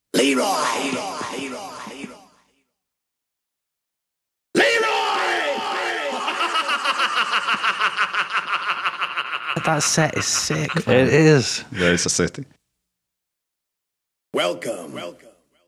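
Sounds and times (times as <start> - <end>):
speech: 0.2 - 1.2, 9.6 - 12.6, 14.4 - 15.3
crowd of fighters shouting in a brawl on a dance floor: 4.6 - 6.6
yelling voices: 4.6 - 7.1
laughter: 5.6 - 12.0.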